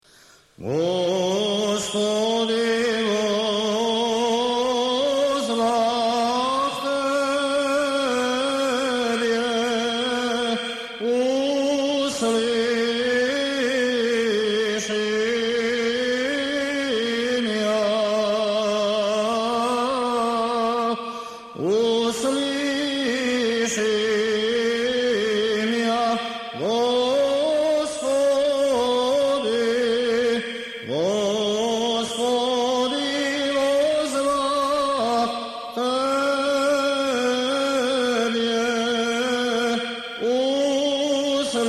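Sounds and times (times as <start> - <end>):
Orthodox church chant in tone four: 0.6 - 41.6.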